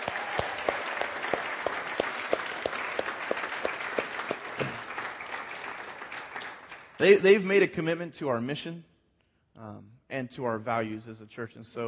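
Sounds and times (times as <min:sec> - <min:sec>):
audience applause: 0:00.0 - 0:07.2
speech: 0:07.0 - 0:08.9, 0:09.6 - 0:11.8.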